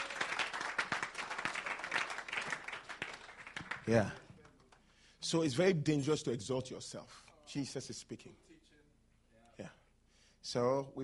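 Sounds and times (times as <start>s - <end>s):
audience clapping: 0.0s - 4.9s
speech: 3.9s - 4.2s, 5.2s - 8.4s, 9.6s - 9.8s, 10.4s - 11.0s.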